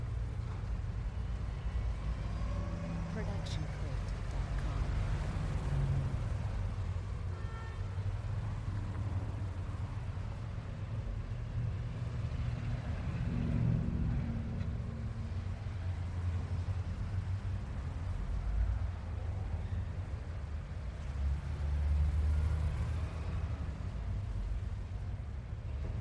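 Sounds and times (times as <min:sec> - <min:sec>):
city ambience: 0:00.0 - 0:25.9.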